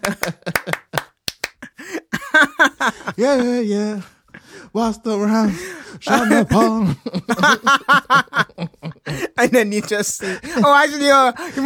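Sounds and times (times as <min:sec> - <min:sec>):
sharp crisp hand claps: 0:00.0 - 0:01.8
laughter: 0:00.0 - 0:04.5, 0:06.0 - 0:11.6
speech: 0:03.2 - 0:08.4, 0:09.2 - 0:11.6.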